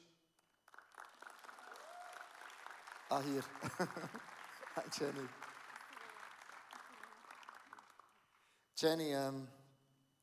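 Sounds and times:
audience applause: 0.7 - 8.5
speech: 3.1 - 5.5, 8.8 - 9.6
laughter: 3.3 - 5.3.

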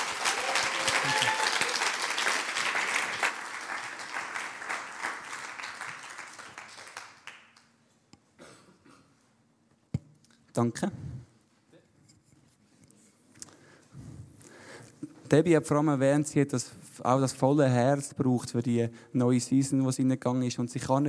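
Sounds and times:
loud audience applause: 0.0 - 7.7
speech: 10.6 - 11.0, 15.3 - 21.0.

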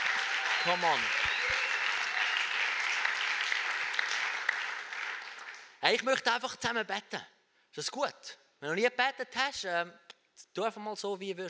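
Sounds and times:
audience applause: 0.0 - 5.7
speech: 0.6 - 1.2, 5.8 - 11.4.

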